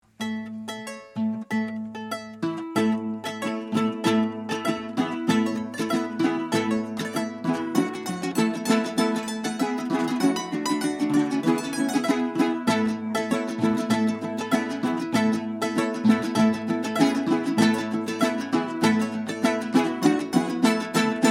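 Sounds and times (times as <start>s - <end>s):
son huasteco folk music: 0.0s - 21.2s.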